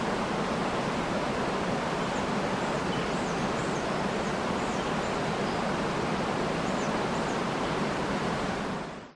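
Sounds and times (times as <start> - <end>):
creek waterfall at 40m distance: 0.0 - 9.1
forest birds: 1.9 - 9.1.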